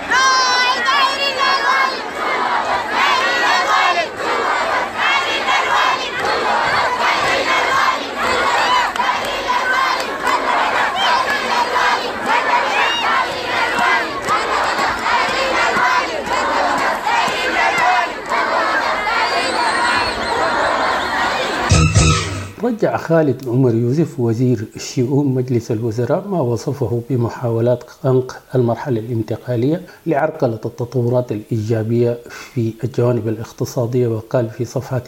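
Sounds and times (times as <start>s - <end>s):
protesting students chanting slogans: 0.0s - 22.6s
speech: 22.7s - 35.0s.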